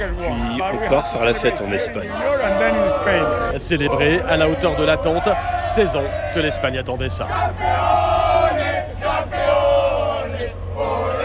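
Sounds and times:
speech: 0.0s - 8.1s
football supporters shouting: 0.0s - 11.2s.

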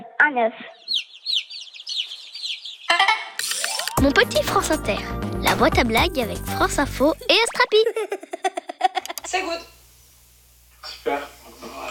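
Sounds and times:
speech: 0.2s - 1.1s, 4.0s - 8.4s, 9.3s - 9.7s, 11.0s - 11.4s
hen clucking: 0.8s - 3.4s
laughter: 7.8s - 9.2s.

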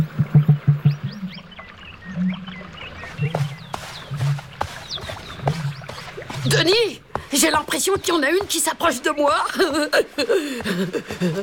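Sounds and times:
male bird's loud courtship call: 0.0s - 7.1s
speech: 6.5s - 11.4s
laughter: 9.4s - 11.4s.

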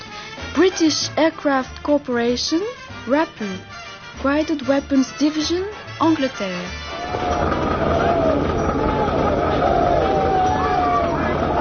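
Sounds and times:
speech: 0.6s - 7.7s
rumbling din: 6.8s - 11.5s
troops shouting before charging to assault: 6.9s - 11.5s.

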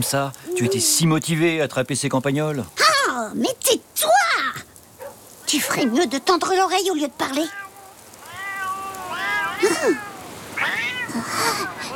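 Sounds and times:
speech: 0.0s - 4.6s, 5.5s - 7.6s, 9.6s - 10.1s
cats meowing: 5.2s - 11.9s.

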